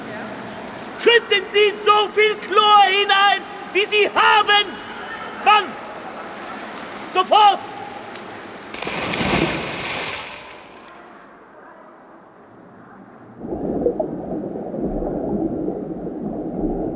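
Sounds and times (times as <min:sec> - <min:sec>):
speech: 0:01.0 - 0:04.8, 0:05.4 - 0:05.8, 0:07.1 - 0:07.7
underwater gurgling and rushing water as someone swims laps in a pool: 0:13.2 - 0:16.9
hissing burst of bubbles underwater in a pool: 0:13.4 - 0:16.9.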